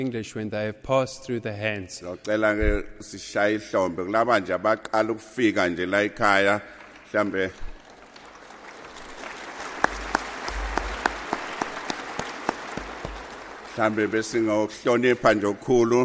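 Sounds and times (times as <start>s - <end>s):
speech: 0.0s - 7.7s, 13.8s - 16.0s
audience applause: 6.8s - 15.1s.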